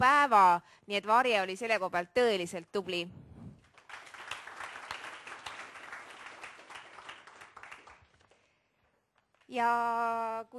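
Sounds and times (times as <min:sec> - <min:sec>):
speech: 0:00.0 - 0:03.3, 0:09.5 - 0:10.5
audience applause: 0:03.7 - 0:08.4.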